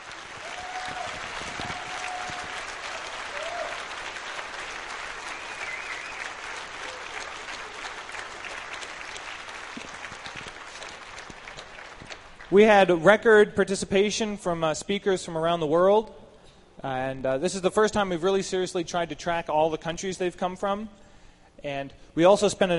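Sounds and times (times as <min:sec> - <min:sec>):
audience applause for speakers: 0:00.0 - 0:12.6
faint whistle: 0:05.3 - 0:06.3
speech: 0:12.5 - 0:16.2, 0:16.8 - 0:21.0, 0:21.6 - 0:22.7.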